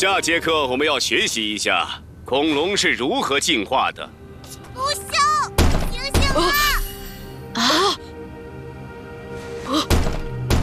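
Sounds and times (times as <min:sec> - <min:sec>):
speech: 0:00.0 - 0:04.2, 0:06.4 - 0:06.8, 0:07.6 - 0:08.0, 0:09.7 - 0:10.0
knocking on a door: 0:05.6 - 0:06.3.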